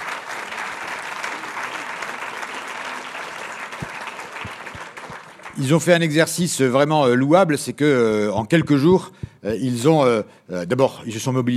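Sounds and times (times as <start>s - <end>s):
audience applause: 0.0s - 6.0s
speech: 5.6s - 11.5s.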